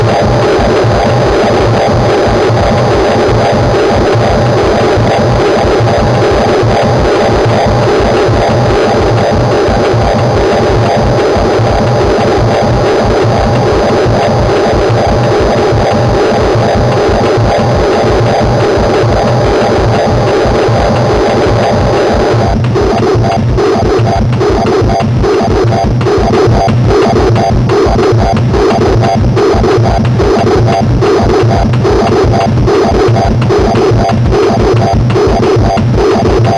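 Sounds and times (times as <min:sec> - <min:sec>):
inharmonic overtones: 0:00.0 - 0:36.5.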